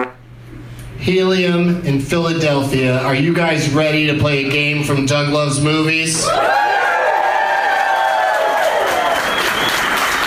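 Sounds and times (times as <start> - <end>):
speech: 1.0 - 6.7
crowd cheering and applauding: 6.4 - 10.2.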